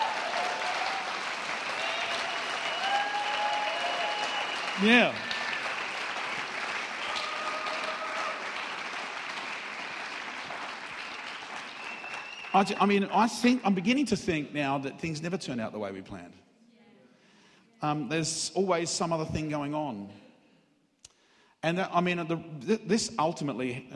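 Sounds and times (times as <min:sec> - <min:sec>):
audience applause: 0:00.0 - 0:13.7
speech: 0:04.8 - 0:05.3, 0:12.6 - 0:16.4, 0:17.8 - 0:20.2, 0:21.6 - 0:23.9.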